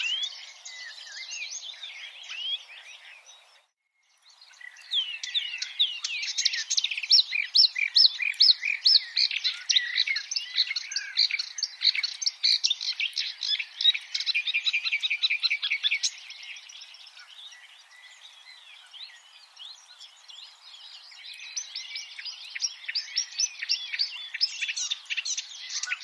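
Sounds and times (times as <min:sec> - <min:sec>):
marsh warbler in full song: 0:00.0 - 0:26.0.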